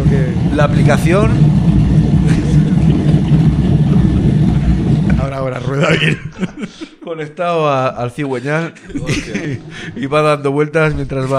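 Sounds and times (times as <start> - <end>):
coffee grinder running with a low mechanical rumble: 0.0 - 5.9
speech: 0.2 - 1.6, 5.5 - 11.3
laughter: 5.0 - 7.2, 8.4 - 10.5.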